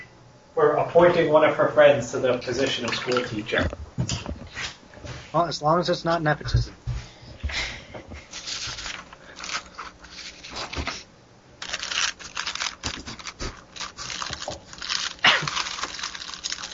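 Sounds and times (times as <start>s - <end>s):
speech: 0.6s - 4.1s, 5.4s - 6.8s
saltine cracker sleeve plastic wrapping crinkling: 8.3s - 16.7s.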